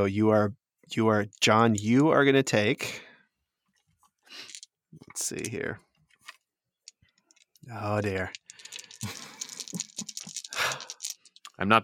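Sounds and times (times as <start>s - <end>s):
speech: 0.0s - 3.1s, 4.3s - 5.9s, 7.6s - 8.4s, 11.6s - 11.8s
dice rattling as they are gathered: 1.3s - 2.1s, 4.3s - 11.6s.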